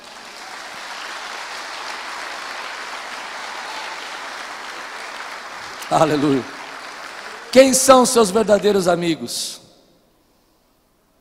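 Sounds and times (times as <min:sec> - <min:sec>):
audience applauding: 0:00.0 - 0:09.0
speech: 0:05.9 - 0:06.6, 0:07.5 - 0:09.6.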